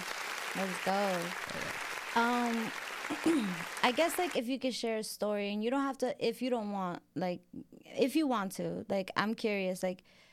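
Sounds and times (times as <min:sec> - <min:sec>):
hand clapping applause: 0:00.0 - 0:04.4
speech: 0:00.6 - 0:10.2.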